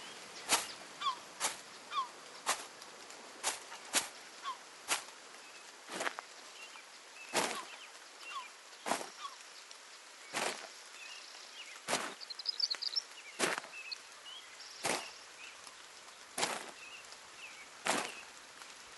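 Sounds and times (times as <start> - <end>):
footsteps: 0.0 - 0.8, 1.4 - 6.5, 7.3 - 8.0, 8.8 - 9.2, 10.3 - 10.7, 11.8 - 12.2, 13.4 - 13.7, 14.8 - 15.1, 16.4 - 16.8, 17.8 - 18.7.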